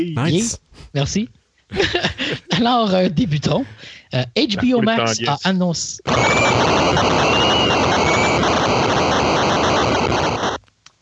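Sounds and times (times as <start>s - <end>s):
speech: 0.0s - 8.0s
laughter: 1.7s - 3.6s, 4.6s - 5.4s
8-bit crowd cheering sound effect: 6.1s - 10.2s.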